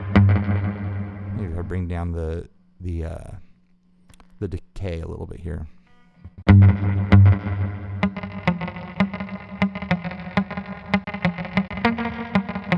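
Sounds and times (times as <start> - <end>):
distorted electric guitar riff with slapback echo and short reverb: 0.0 - 2.2, 6.5 - 12.7
speech: 1.6 - 3.5, 4.4 - 5.8.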